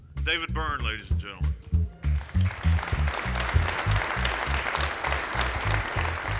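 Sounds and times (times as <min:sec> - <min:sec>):
speech: 0:00.2 - 0:01.6
audience applause: 0:02.0 - 0:06.3.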